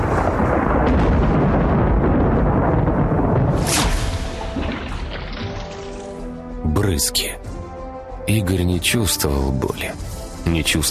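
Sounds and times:
deafening thunderclap: 0.0s - 5.7s
speech: 7.0s - 7.4s, 8.3s - 10.9s.

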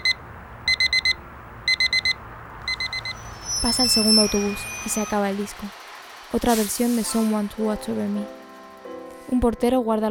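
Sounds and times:
clock beeping: 0.0s - 5.7s
speech: 3.6s - 8.4s, 9.3s - 10.0s.

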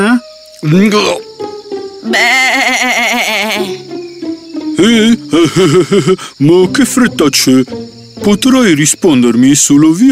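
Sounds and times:
speech: 0.6s - 1.2s, 2.0s - 4.0s, 4.8s - 10.1s
goat bleating: 2.0s - 3.8s
laughter: 4.7s - 6.4s.

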